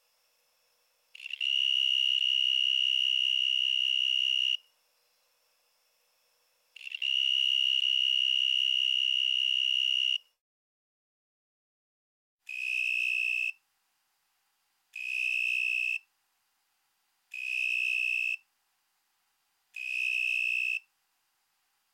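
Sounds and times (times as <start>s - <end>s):
narrow-winged tree cricket trilling: 0.0s - 10.3s, 12.5s - 13.6s, 15.0s - 16.1s, 17.3s - 18.5s, 19.8s - 20.9s.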